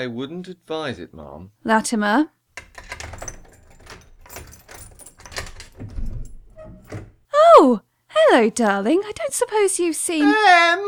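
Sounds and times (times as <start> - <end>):
speech: 0.0 - 3.0, 7.6 - 10.8
door clunking and creaking open: 2.6 - 7.2
keys rattling in a lock: 2.6 - 7.2.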